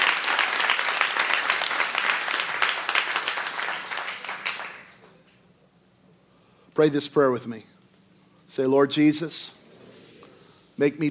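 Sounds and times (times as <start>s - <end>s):
church congregation applauding: 0.0s - 5.2s
speech: 6.8s - 7.7s, 8.6s - 9.6s, 10.8s - 11.0s.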